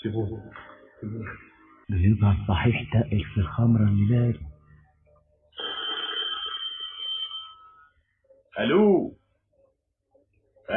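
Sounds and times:
speech: 0:00.0 - 0:04.5, 0:08.6 - 0:09.2
telephone ringing: 0:05.5 - 0:08.0.

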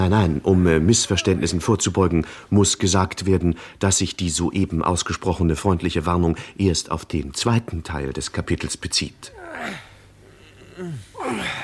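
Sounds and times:
speech: 0:00.0 - 0:09.9, 0:10.8 - 0:11.6
men working hard breathing heavily: 0:09.6 - 0:11.6.

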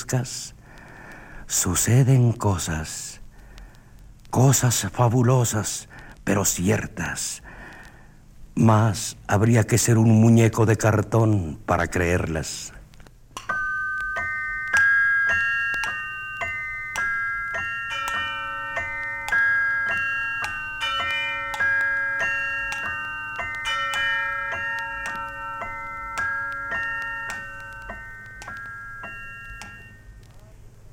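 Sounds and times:
speech: 0:00.1 - 0:00.6, 0:01.5 - 0:03.2, 0:04.3 - 0:07.6, 0:08.6 - 0:12.8
clock chimes striking three in the morning: 0:13.5 - 0:30.3.

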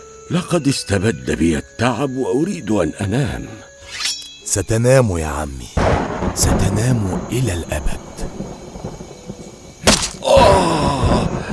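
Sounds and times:
speech: 0:00.3 - 0:08.1
sharp thud: 0:09.8 - 0:11.2
human scream: 0:10.1 - 0:11.5.

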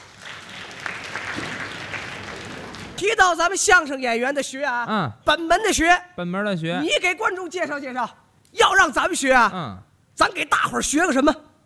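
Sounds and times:
audience applause welcoming two crosstalk comedians: 0:00.0 - 0:03.0
speech: 0:03.0 - 0:11.4.

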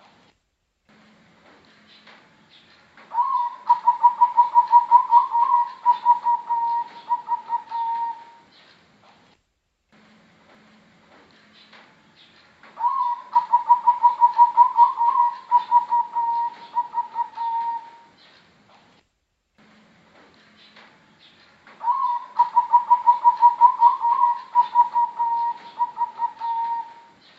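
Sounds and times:
Bangkok type zebra dove singing quick evenly pulsed coos: 0:03.1 - 0:08.4, 0:12.8 - 0:18.1, 0:21.8 - 0:27.3.

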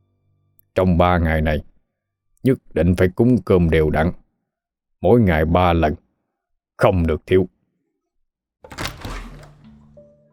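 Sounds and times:
speech: 0:00.8 - 0:01.7, 0:02.4 - 0:04.2, 0:05.0 - 0:06.0, 0:06.8 - 0:07.5, 0:08.6 - 0:08.9
room door shutting: 0:08.6 - 0:10.0.

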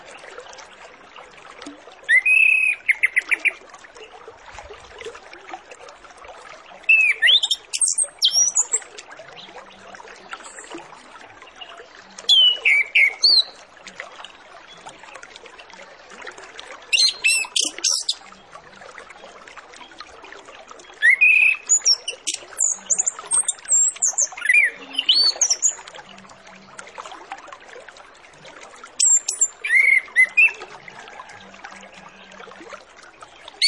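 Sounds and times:
Orange-headed Thrush song: 0:02.1 - 0:03.5, 0:06.9 - 0:08.8, 0:12.3 - 0:13.6, 0:16.9 - 0:18.2, 0:21.0 - 0:25.8, 0:29.0 - 0:30.6.

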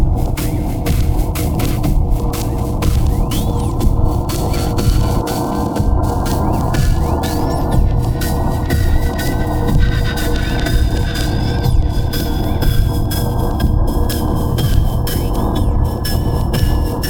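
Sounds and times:
low rumble: 0:00.0 - 0:17.0
shaped noise clicking pulses: 0:00.2 - 0:15.7.

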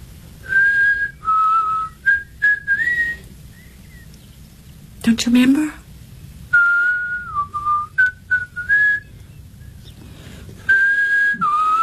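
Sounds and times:
person whistling a short melody: 0:00.4 - 0:03.8, 0:06.6 - 0:09.1, 0:10.6 - 0:11.8
speech: 0:05.0 - 0:05.8.

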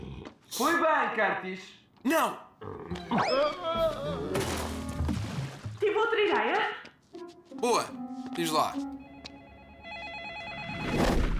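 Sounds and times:
speech: 0:00.6 - 0:04.6, 0:05.8 - 0:06.8, 0:07.6 - 0:08.9
telephone ringing with a warbling electronic trill: 0:09.0 - 0:11.0.

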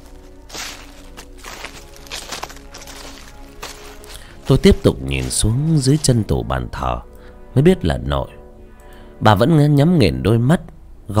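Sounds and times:
slow shuffling footsteps in a living room at midnight: 0:00.0 - 0:06.6
speech: 0:04.5 - 0:08.4, 0:09.2 - 0:11.1.

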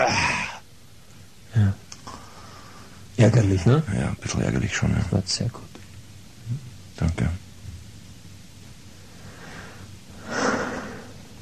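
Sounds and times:
coughing: 0:00.0 - 0:00.6
speech: 0:03.2 - 0:05.8, 0:06.5 - 0:07.4.

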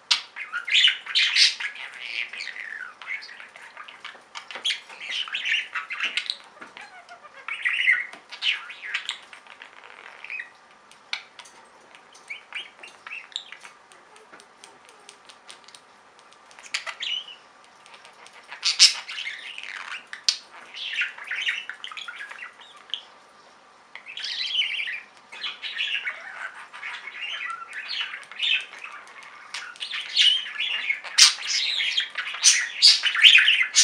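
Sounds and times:
budgerigar chatter: 0:00.0 - 0:23.2, 0:24.0 - 0:33.8.

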